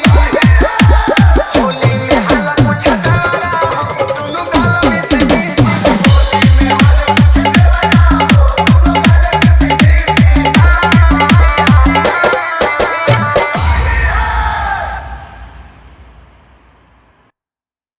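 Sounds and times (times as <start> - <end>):
Holi dholak bass dance mix: 0.0 - 14.3.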